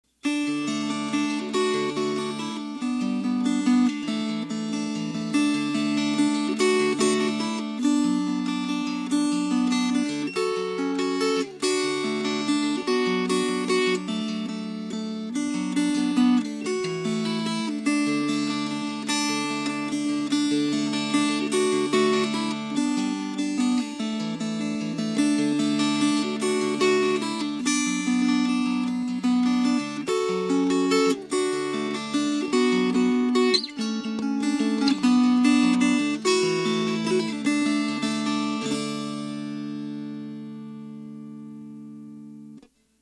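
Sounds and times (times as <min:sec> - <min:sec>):
fingerpicked strings: 0:00.2 - 0:42.9.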